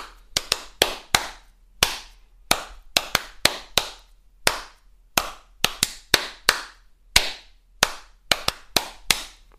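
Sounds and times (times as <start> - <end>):
hands clapping a rhythm: 0.0 - 9.5.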